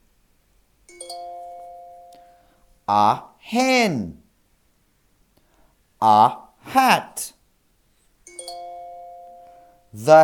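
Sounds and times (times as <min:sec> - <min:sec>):
two-note electronic page-turn chime: 0:00.9 - 0:02.6, 0:08.3 - 0:09.9
speech: 0:02.9 - 0:04.2, 0:06.0 - 0:07.4, 0:10.0 - 0:10.2.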